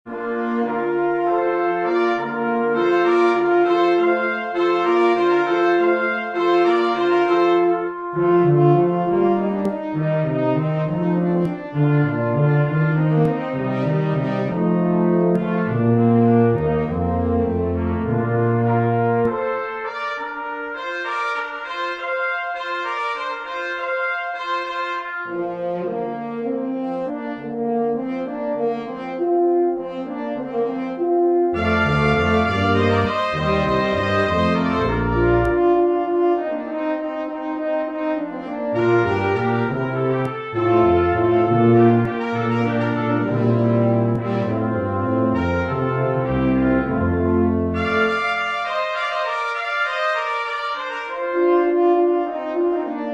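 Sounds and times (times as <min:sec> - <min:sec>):
brass quintet playing: 0:00.1 - 0:53.1.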